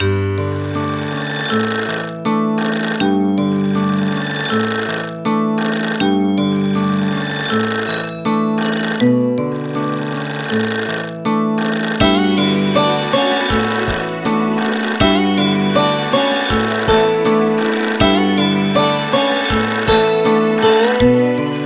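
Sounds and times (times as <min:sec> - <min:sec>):
airy polyphonic music: 0:00.0 - 0:21.6.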